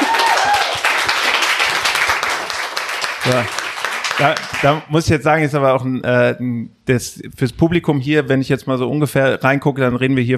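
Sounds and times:
applause: 0.0s - 4.8s
speech: 3.3s - 3.6s, 4.2s - 10.3s.

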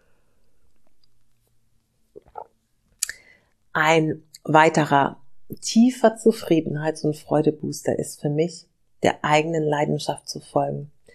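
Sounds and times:
person taking a sip of water: 2.2s - 3.2s
speech: 3.8s - 11.0s.

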